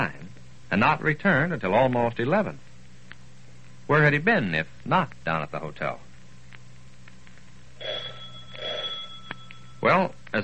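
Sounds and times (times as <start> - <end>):
speech: 0.0 - 2.6, 3.9 - 6.0, 9.8 - 10.4
doorbell ringing: 7.8 - 9.9.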